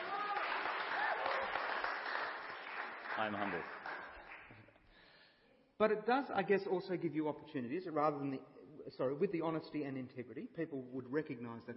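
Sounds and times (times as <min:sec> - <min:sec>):
audience clapping: 0:00.0 - 0:04.9
speech: 0:03.2 - 0:03.9, 0:05.8 - 0:11.7.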